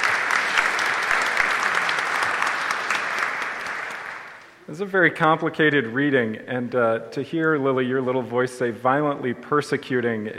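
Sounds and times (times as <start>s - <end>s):
audience round of applause: 0.0s - 4.4s
speech: 4.7s - 10.3s.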